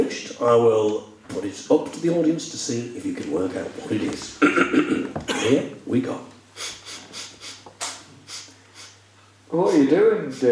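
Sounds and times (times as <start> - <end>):
speech: 0.1 - 6.8, 9.5 - 10.5
person sniffing: 6.6 - 9.0, 9.7 - 10.5.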